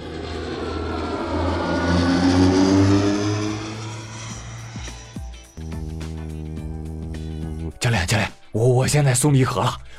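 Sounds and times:
small airplane engine droning as it takes off and flies: 0.0 - 7.8
speech: 8.6 - 9.9.

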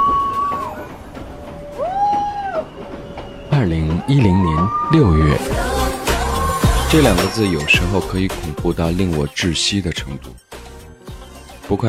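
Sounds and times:
drawn-out high wails: 0.0 - 6.6
mountain train rumbling through tunnels: 0.0 - 8.2
speech: 3.6 - 5.6, 6.9 - 10.5, 11.7 - 11.8.

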